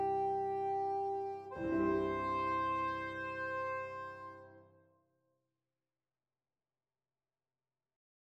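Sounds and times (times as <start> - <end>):
alto saxophone: 0.0 - 4.9.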